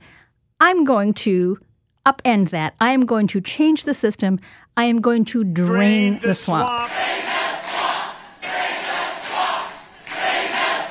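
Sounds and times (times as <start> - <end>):
speech: 0.6 - 7.4
loud rally crowd cheering and roaring: 6.7 - 10.8.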